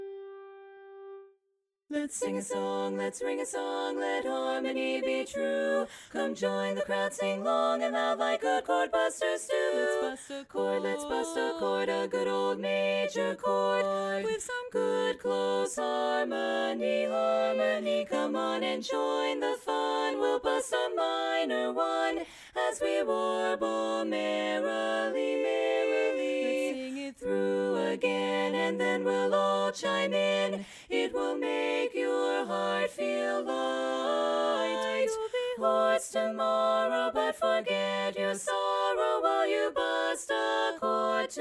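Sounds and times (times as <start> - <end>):
tenor chorus singing: 1.9 - 41.3.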